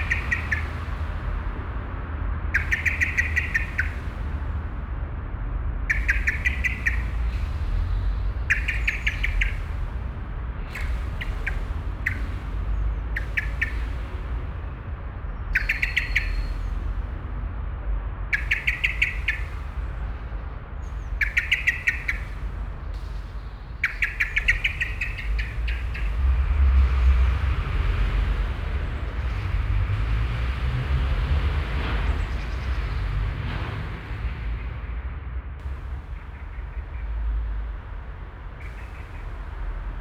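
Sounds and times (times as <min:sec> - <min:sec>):
Common Blackbird chirping: 0:00.0 - 0:01.8, 0:02.5 - 0:04.5, 0:05.9 - 0:14.8, 0:15.6 - 0:17.1, 0:18.3 - 0:34.6, 0:35.7 - 0:37.6, 0:38.6 - 0:40.0
street traffic rumble: 0:00.0 - 0:40.0.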